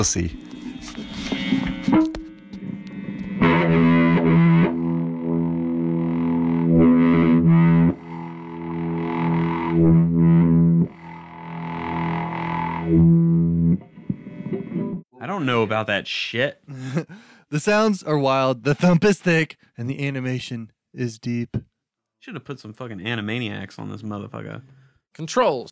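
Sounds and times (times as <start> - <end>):
speech: 0.0 - 1.0, 15.6 - 25.7
bass guitar quarter notes through effects: 0.0 - 15.0.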